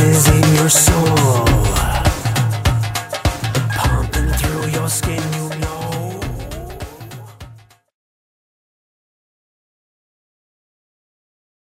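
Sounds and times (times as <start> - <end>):
Indian groove: 0.0 - 7.7.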